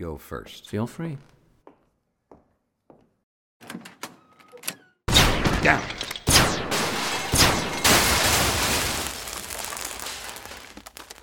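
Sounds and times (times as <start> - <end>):
speech: 0.0 - 1.4, 5.6 - 6.0
sci-fi blaster shots from a booby trap: 5.1 - 9.2.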